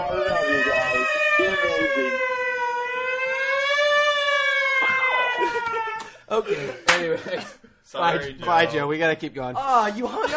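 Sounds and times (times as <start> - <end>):
Whamulance ambulance siren sound effect: 0.0 - 6.0
laughter: 5.0 - 7.8, 9.9 - 10.3
speech: 6.3 - 10.3.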